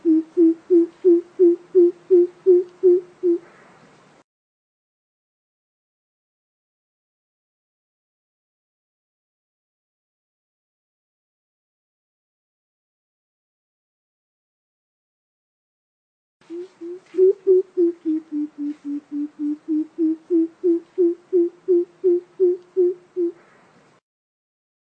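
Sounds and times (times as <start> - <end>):
coucal giving deep hollow hoots: 0.0 - 3.6, 16.5 - 23.5.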